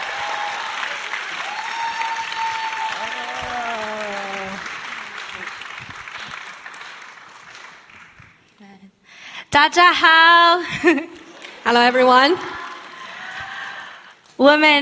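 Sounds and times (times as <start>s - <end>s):
audience applause at a church gathering welcoming a youth minister: 0.0s - 8.4s, 11.2s - 14.1s
speech: 9.6s - 12.6s, 14.4s - 14.8s.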